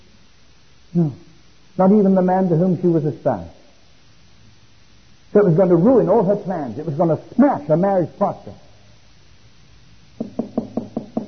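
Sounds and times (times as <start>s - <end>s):
speech: 0.9s - 3.6s, 5.3s - 8.6s
knocking on a wooden door: 10.2s - 11.2s.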